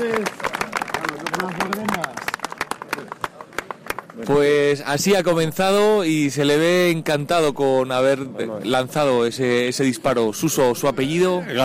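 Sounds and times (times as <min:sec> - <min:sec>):
general applause after a launch: 0:00.0 - 0:04.5
speech: 0:04.3 - 0:11.6.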